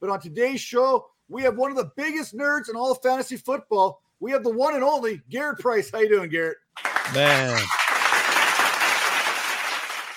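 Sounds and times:
speech: 0:00.0 - 0:07.8
canned crowd applause sound effect: 0:06.8 - 0:10.1.

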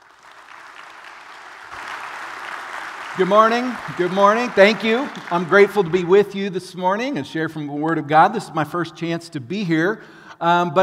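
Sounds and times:
church congregation applauding a guest speaker: 0:00.0 - 0:06.5
speech: 0:03.2 - 0:10.8.

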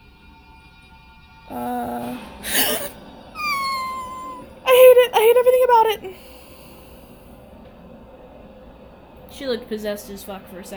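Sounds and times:
dog making noise: 0:03.4 - 0:04.5
speech: 0:05.2 - 0:06.3, 0:09.4 - 0:10.7.

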